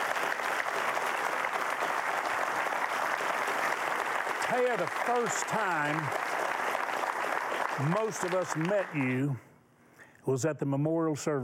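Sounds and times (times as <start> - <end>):
studio audience applauding: 0.0 - 9.4
speech: 4.5 - 6.2, 7.8 - 9.5, 10.3 - 11.4.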